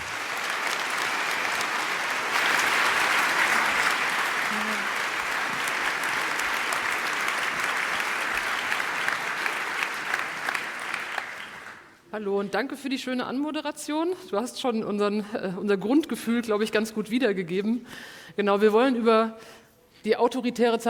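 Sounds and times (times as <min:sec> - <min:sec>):
audience applause: 0:00.0 - 0:12.0
speech: 0:12.2 - 0:20.8.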